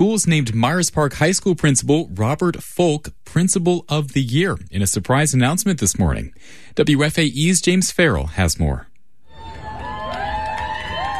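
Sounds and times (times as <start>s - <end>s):
speech: 0.0s - 8.9s
students cheering on a high school quad: 9.3s - 11.1s.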